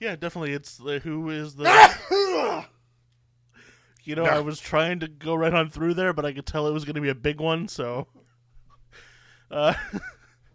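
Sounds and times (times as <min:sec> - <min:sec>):
speech: 0:00.0 - 0:02.8, 0:04.0 - 0:08.2, 0:08.9 - 0:10.2
small stifled sneeze: 0:01.6 - 0:02.7.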